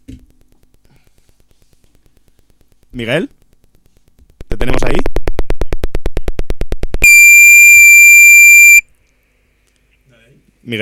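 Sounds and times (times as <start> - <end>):
speech: 3.0 - 3.4
high-pitched beep: 7.0 - 8.8.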